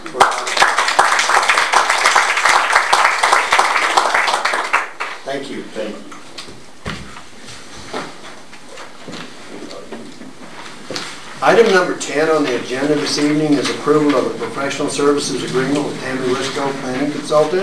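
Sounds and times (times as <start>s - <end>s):
meeting audience round of applause: 0.0s - 5.2s
speech: 11.4s - 17.6s.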